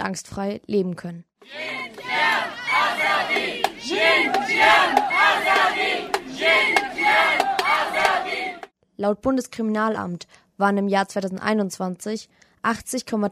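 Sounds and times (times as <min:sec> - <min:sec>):
speech: 0:00.0 - 0:13.3
crowd of demonstrators chanting at a march in Munich against violence against women: 0:01.4 - 0:08.7
sharp percussive hits: 0:01.8 - 0:08.3.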